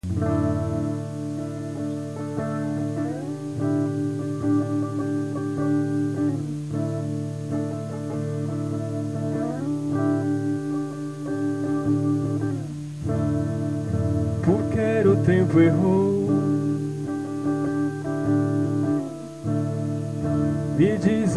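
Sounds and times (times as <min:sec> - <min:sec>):
acoustic rehearsal: 0:00.0 - 0:21.3.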